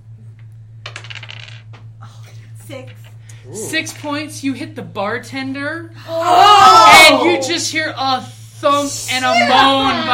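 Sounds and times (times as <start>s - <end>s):
dice rolling on a table: 0.8s - 1.9s
speech: 2.7s - 10.1s.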